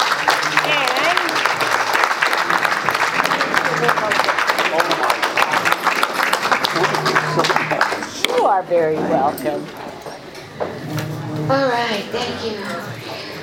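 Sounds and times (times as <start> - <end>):
audience applause: 0.0 - 8.3
speech: 8.6 - 9.8, 11.5 - 12.9.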